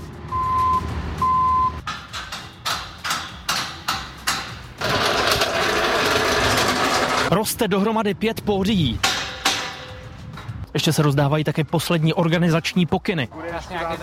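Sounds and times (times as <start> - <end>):
construction site noise: 0.0 - 7.4, 8.9 - 10.7
speech: 7.3 - 9.1, 10.8 - 14.0.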